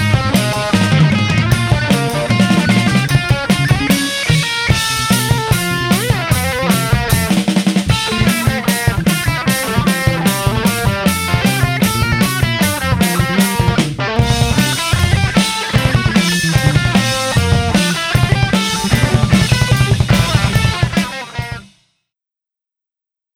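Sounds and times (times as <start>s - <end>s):
guitar left channel: 0.0s - 21.8s.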